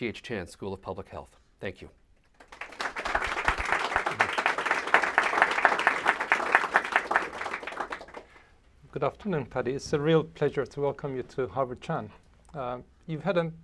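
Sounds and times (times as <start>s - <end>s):
speech: 0.0s - 2.0s, 9.0s - 13.6s
audience applause welcoming a speaker to the Voices in Leadership series: 2.4s - 8.4s.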